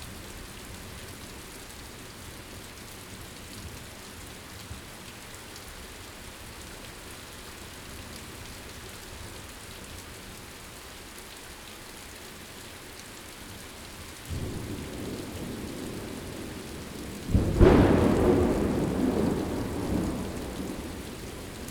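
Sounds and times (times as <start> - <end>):
thunderstorm: 14.3 - 21.7.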